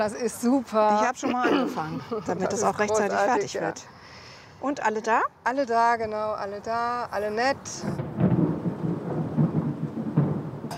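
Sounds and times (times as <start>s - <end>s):
speech: 0.0s - 4.0s, 4.6s - 8.1s
rumbling thunder: 7.7s - 10.7s.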